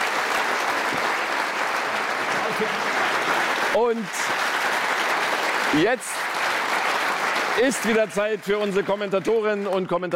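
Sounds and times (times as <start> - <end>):
audience applause: 0.0 - 10.1
speech: 2.6 - 2.9, 3.8 - 4.8, 5.7 - 6.2, 7.6 - 10.1.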